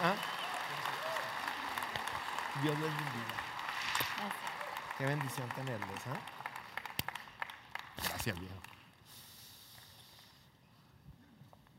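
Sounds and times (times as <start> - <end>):
audience applause: 0.0 - 8.8
speech: 2.6 - 3.5, 4.2 - 6.4, 8.0 - 8.7.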